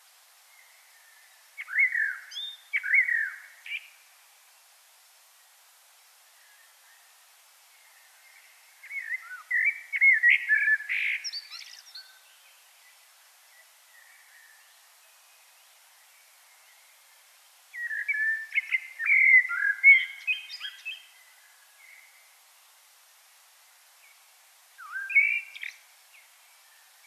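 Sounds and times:
common blackbird song: 0:00.6 - 0:04.0, 0:07.8 - 0:12.2, 0:17.7 - 0:21.2, 0:24.8 - 0:27.0.

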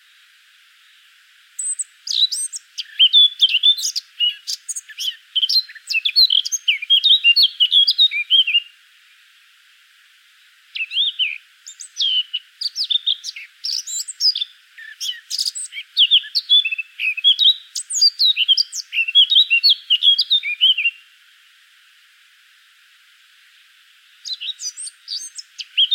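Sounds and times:
Eurasian blackcap singing: 0:01.6 - 0:08.7, 0:10.8 - 0:21.0, 0:24.2 - 0:25.9.

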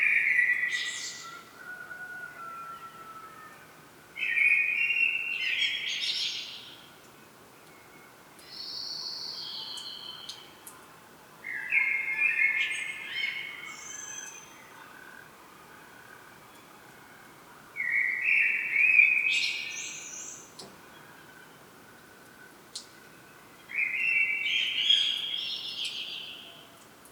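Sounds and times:
common blackbird song: 0:00.0 - 0:01.6, 0:04.2 - 0:10.8, 0:11.4 - 0:15.0, 0:17.8 - 0:21.7, 0:22.4 - 0:26.9.

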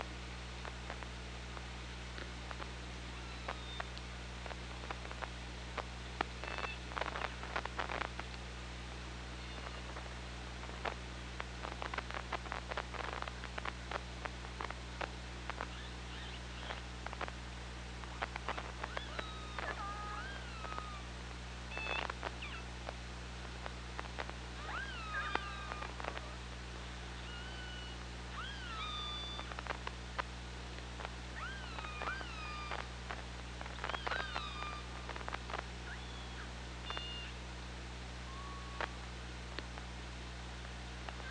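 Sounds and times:
low hum: 0:00.0 - 0:41.2
killer whale tonal calls: 0:15.7 - 0:16.8, 0:18.5 - 0:21.1, 0:24.6 - 0:26.4, 0:27.2 - 0:29.6, 0:31.4 - 0:32.9, 0:33.8 - 0:34.9, 0:38.3 - 0:39.0.

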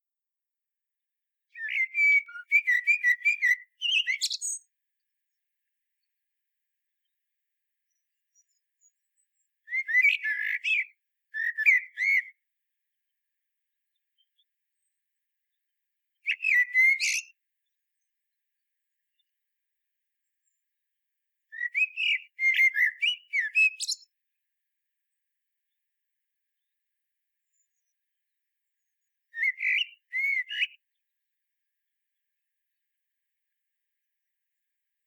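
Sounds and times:
common blackbird song: 0:01.4 - 0:19.5, 0:20.1 - 0:24.3, 0:25.0 - 0:31.2.

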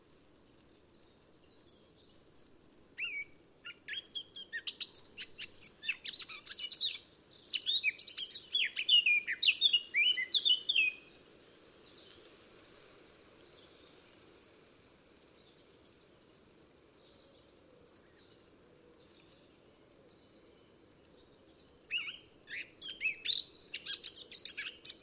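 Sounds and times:
Eurasian blackcap Sylvia atricapilla warbling song: 0:03.0 - 0:11.1, 0:21.5 - 0:25.0.

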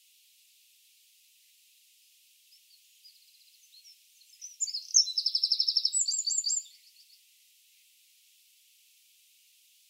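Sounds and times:
Eurasian wren high trilling song: 0:02.5 - 0:07.2.

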